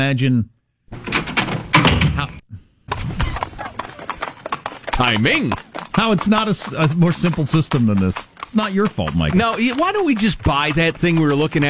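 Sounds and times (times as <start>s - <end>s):
speech: 0.0s - 1.1s, 5.0s - 11.6s
horse hooves clip-clopping: 2.9s - 11.6s.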